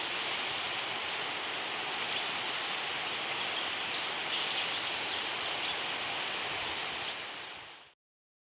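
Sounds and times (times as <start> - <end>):
Yellow-green Bush-Tanager calling in Ecuador: 0.0 - 8.0.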